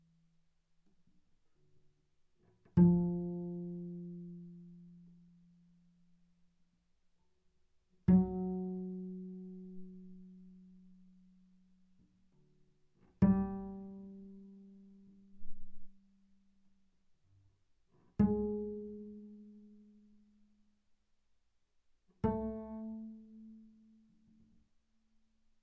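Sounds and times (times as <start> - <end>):
double bass pizzicato sul G fortissimo: 2.6 - 5.9, 8.0 - 16.0, 18.1 - 20.3, 22.2 - 24.5.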